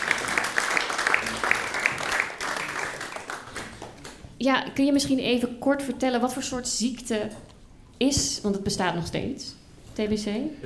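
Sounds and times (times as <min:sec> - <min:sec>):
audience applause: 0:00.0 - 0:04.1
speech: 0:04.4 - 0:10.6.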